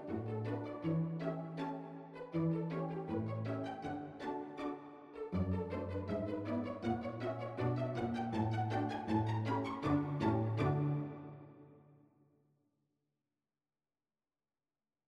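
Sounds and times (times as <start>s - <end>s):
string orchestra playing pizzicato: 0.0s - 11.7s.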